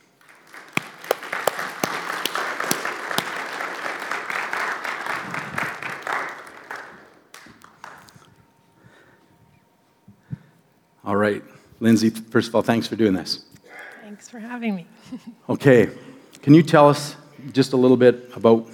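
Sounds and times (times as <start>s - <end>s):
audience applause welcoming a guest: 0.0s - 8.3s
speech: 11.1s - 13.5s, 14.3s - 18.7s.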